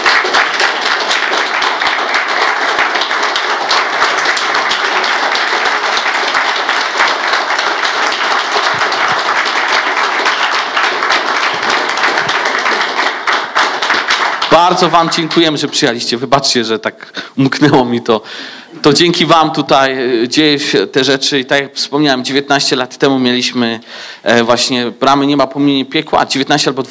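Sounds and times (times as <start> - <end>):
audience applause: 0.0 - 15.8
speech: 14.6 - 26.9.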